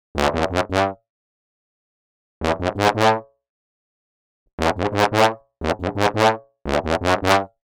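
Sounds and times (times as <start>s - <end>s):
tuba: 0.2s - 1.0s, 2.4s - 3.3s, 4.6s - 7.6s.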